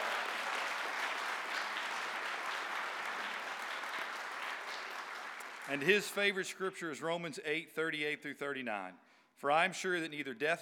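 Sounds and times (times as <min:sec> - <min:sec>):
audience clapping: 0:00.0 - 0:06.3
speech: 0:05.7 - 0:10.5.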